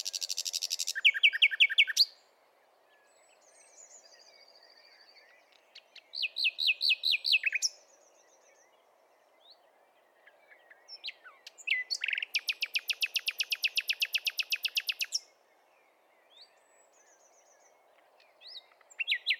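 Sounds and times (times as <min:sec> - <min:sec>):
Common nightingale Luscinia megarhynchos singing whistled notes and rattling trill: 0:00.0 - 0:19.3.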